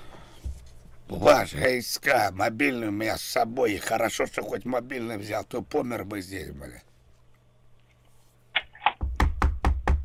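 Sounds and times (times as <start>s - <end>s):
speech: 1.2s - 6.9s
knocking on a wall or door: 9.0s - 10.0s.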